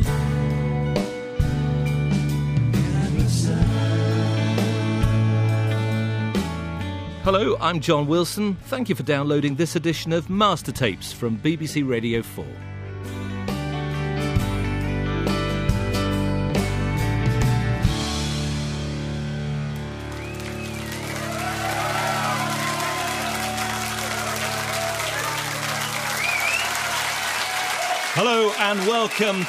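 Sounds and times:
live band performance at Maida Vale Studios: 0.0s - 7.0s, 13.1s - 23.7s
speech: 7.3s - 12.7s, 28.6s - 29.4s
studio audience applause and cheering: 19.7s - 29.4s.

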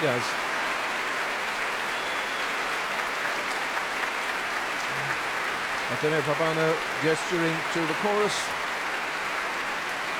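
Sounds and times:
speech: 0.0s - 0.5s, 5.9s - 8.6s
applause: 0.0s - 10.1s.

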